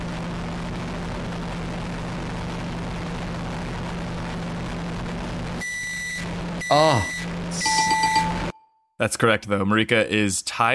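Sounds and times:
microwave oven running: 0:00.0 - 0:08.5
speech: 0:06.7 - 0:07.7, 0:09.0 - 0:10.7.

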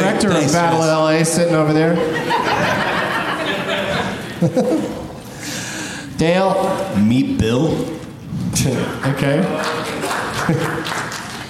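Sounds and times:
speech: 0:00.2 - 0:03.0, 0:04.4 - 0:05.1, 0:06.2 - 0:10.9
laughter: 0:01.6 - 0:05.3, 0:09.6 - 0:11.3
audience clapping: 0:08.8 - 0:11.4.

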